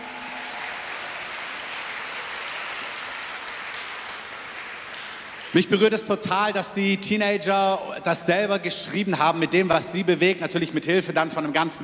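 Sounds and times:
audience applause: 0.0s - 6.0s
speech: 5.5s - 11.8s.

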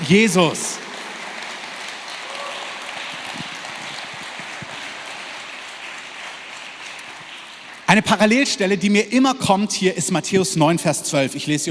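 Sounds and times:
audience applause: 0.0s - 8.2s
speech: 0.1s - 0.8s, 8.0s - 11.6s.

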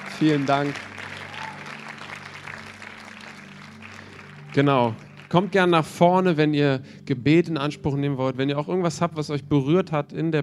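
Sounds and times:
audience applause: 0.0s - 6.0s
speech: 0.2s - 0.9s, 4.5s - 10.4s.

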